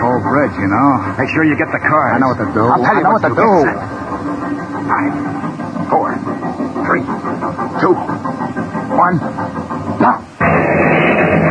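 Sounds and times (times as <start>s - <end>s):
commuter train rumbling: 0.0s - 11.4s
speech: 0.4s - 6.3s, 6.9s - 8.3s, 9.0s - 10.9s.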